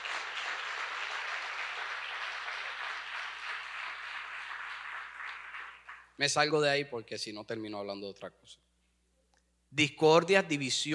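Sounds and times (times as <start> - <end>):
audience applause: 0.0 - 6.1
speech: 6.2 - 8.6, 9.8 - 10.9.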